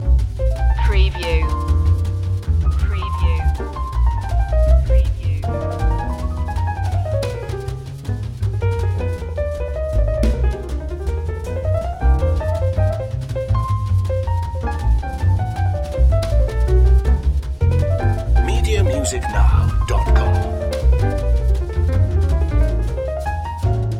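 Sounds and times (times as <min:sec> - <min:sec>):
jazz loop: 0:00.0 - 0:23.9.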